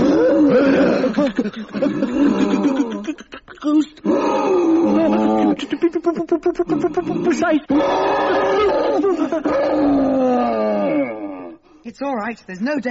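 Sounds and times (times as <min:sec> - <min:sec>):
gorilla howling: 0:00.0 - 0:01.2, 0:04.0 - 0:05.6, 0:06.6 - 0:11.6
speech: 0:01.2 - 0:04.0, 0:05.7 - 0:10.6, 0:11.9 - 0:12.9.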